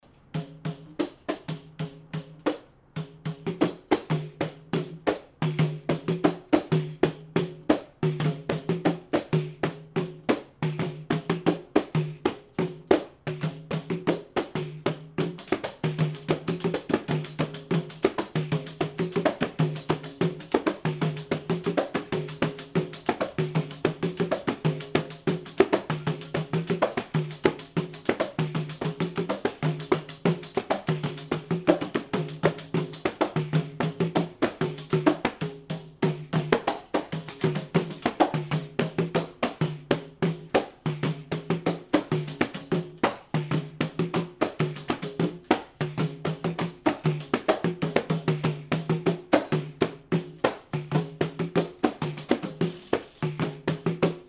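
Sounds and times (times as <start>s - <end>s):
partido alto rhythm with both parts together: 0.0s - 54.2s.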